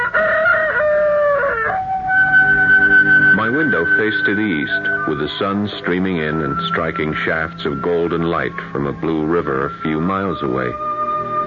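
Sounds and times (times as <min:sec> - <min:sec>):
rooster crowing at sunrise: 0:00.0 - 0:03.2
speech: 0:03.8 - 0:10.9.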